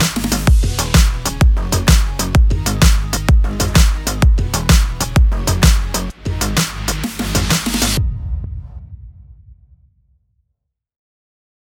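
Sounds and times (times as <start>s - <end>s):
arpeggiated house music bed in E minor at 128 BPM: 0.0s - 8.0s.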